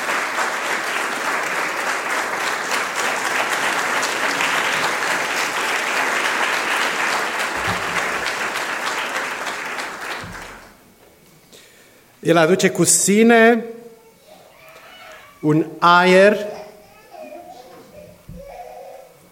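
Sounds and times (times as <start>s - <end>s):
audience applauding in a church: 0.0s - 10.9s
speech: 12.2s - 13.7s, 15.4s - 16.5s.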